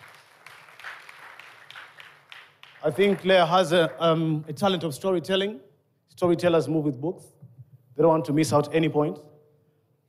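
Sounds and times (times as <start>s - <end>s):
audience applause: 0.0s - 4.2s
speech: 2.8s - 7.4s, 8.0s - 9.3s.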